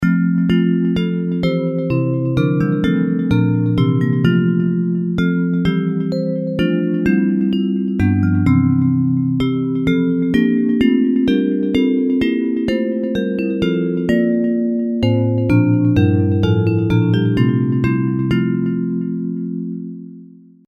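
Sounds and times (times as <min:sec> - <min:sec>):
bells ringing: 0:00.2 - 0:19.2.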